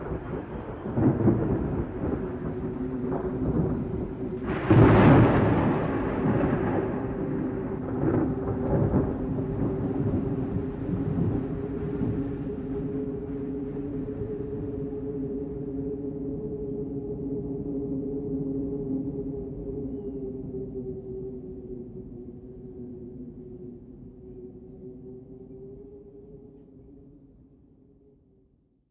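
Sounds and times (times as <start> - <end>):
thunderstorm: 0.0 - 20.9.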